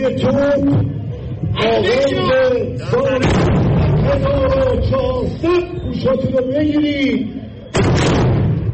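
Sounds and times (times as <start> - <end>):
speech: 0.0 - 8.2
cannon shot fired by armed forces at the Nowruz ceremony at Azadi Tower: 3.2 - 4.9, 7.7 - 8.7.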